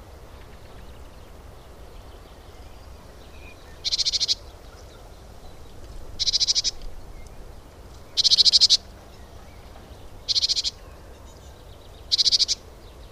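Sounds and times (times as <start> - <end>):
faint background hiss: 0.0 - 13.1
great tit rattling call: 0.4 - 13.1.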